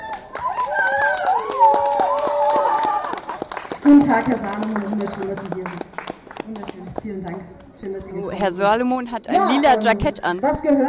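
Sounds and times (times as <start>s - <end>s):
audience applause: 0.0s - 7.4s
speech: 3.9s - 10.8s.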